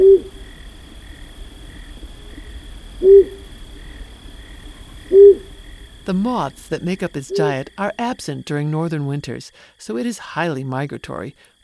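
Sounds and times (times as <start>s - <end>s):
flammulated owl hooting: 0.0s - 6.2s, 7.2s - 7.7s
thin high whine: 0.0s - 8.5s
faint steady hiss: 0.0s - 11.6s
speech: 6.1s - 11.6s.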